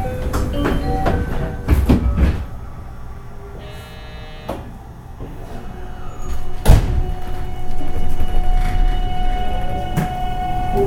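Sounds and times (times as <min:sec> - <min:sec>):
207 series train running on a local service: 0:00.0 - 0:04.1, 0:04.7 - 0:10.8
sustained train motor tones: 0:03.6 - 0:04.7.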